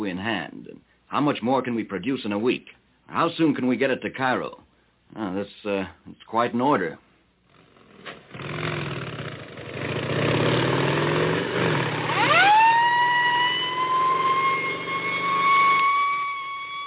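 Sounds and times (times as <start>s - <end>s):
speech: 0.1s - 7.0s
motorcycle escort engines rumbling: 7.5s - 16.8s
motorcycle escort siren wailing: 11.9s - 16.8s.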